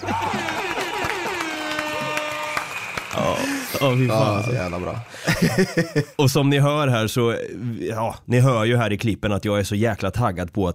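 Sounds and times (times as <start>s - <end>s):
laughter: 0.0s - 2.4s, 3.1s - 6.3s
applause sound effect: 0.0s - 6.1s
speech: 3.8s - 10.7s.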